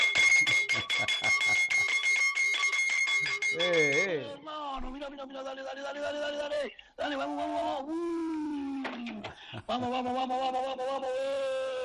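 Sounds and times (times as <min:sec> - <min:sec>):
mechanical alarm clock bell ringing: 0:00.0 - 0:04.5
laughter: 0:00.2 - 0:02.2, 0:05.5 - 0:11.8
speech: 0:05.0 - 0:08.4, 0:09.7 - 0:11.5.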